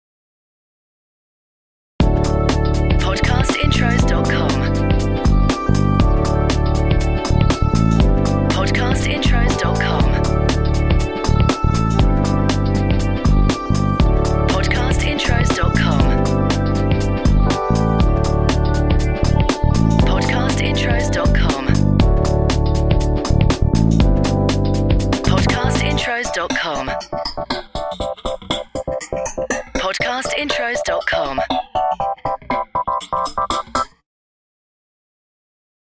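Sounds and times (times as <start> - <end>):
feel-good chill out music: 2.0 - 33.9.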